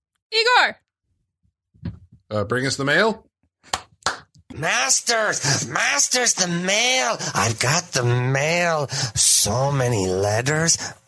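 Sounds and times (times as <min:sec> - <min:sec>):
speech: 0:00.3 - 0:00.8, 0:02.3 - 0:03.9, 0:04.6 - 0:11.0
sharp hand claps to summon someone: 0:03.6 - 0:04.4.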